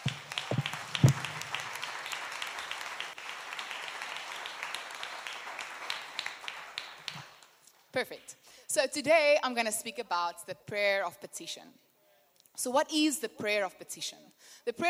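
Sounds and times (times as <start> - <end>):
round of applause: 0.0 - 7.6
speech: 8.0 - 11.8, 12.6 - 14.8.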